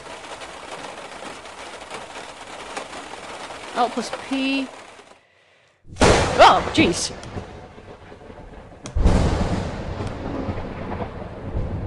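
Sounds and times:
thunder rumbling: 0:00.0 - 0:05.2, 0:05.9 - 0:11.8
faint crackles of thunder: 0:00.0 - 0:05.8
speech: 0:03.8 - 0:04.8, 0:06.4 - 0:07.5.

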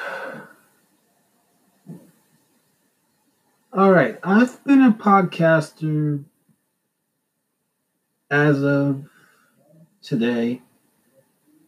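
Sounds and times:
breathing in and out: 0:00.0 - 0:00.8, 0:09.0 - 0:10.0
speech: 0:03.8 - 0:06.3, 0:08.3 - 0:09.1, 0:10.0 - 0:10.7.

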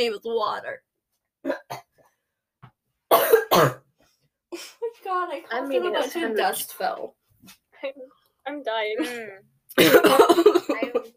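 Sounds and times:
speech: 0:00.0 - 0:01.6, 0:03.5 - 0:03.8, 0:04.6 - 0:11.1
person coughing after choking on water: 0:03.1 - 0:03.9, 0:09.0 - 0:11.1.

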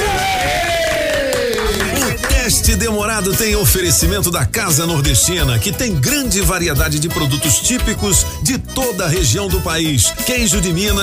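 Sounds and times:
applause: 0:00.0 - 0:02.6
speech: 0:02.7 - 0:11.0.

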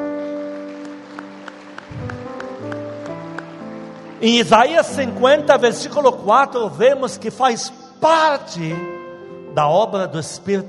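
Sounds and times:
audience clapping along in a steady rhythm: 0:00.0 - 0:05.2
sustained keyboard chords: 0:00.0 - 0:10.6
low bass line: 0:01.9 - 0:02.4
speech: 0:04.2 - 0:08.9, 0:09.6 - 0:10.6.

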